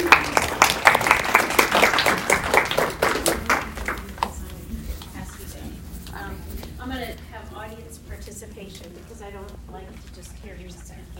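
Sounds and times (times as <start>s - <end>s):
audience clapping in welcome: 0.0s - 4.6s.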